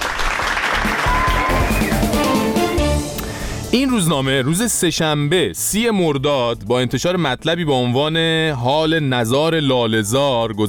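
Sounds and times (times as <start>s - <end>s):
applause for an award presented to a newspaper: 0.0s - 2.4s
speech: 3.7s - 10.6s.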